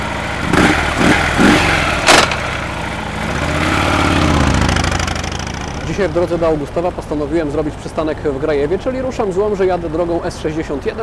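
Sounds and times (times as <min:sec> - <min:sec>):
motorcycle engine idling and pulling away: 0:00.0 - 0:07.8
speech: 0:06.0 - 0:11.0.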